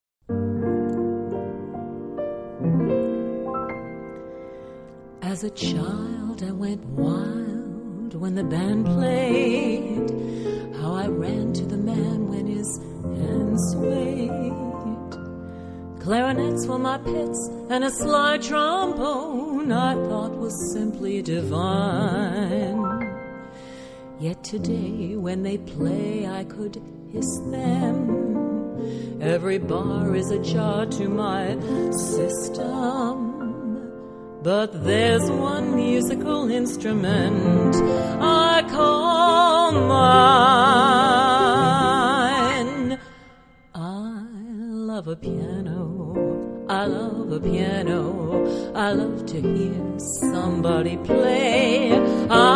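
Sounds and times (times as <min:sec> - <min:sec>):
piano: 0:00.2 - 0:52.5.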